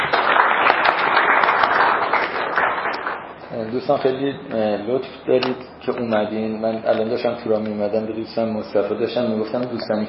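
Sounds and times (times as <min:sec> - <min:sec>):
audience applauding: 0:00.0 - 0:03.4
speech: 0:03.6 - 0:10.0.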